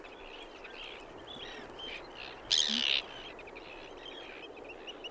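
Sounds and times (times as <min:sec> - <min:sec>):
Arctic Tern calling: 0:01.5 - 0:03.3.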